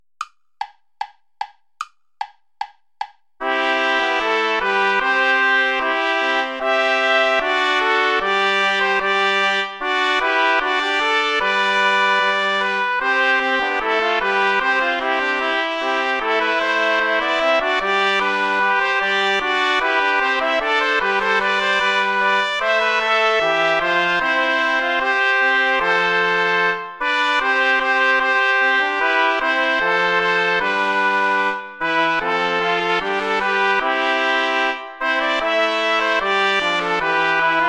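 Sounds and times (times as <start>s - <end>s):
ballet play-along music without trumpet: 2.2s - 37.6s.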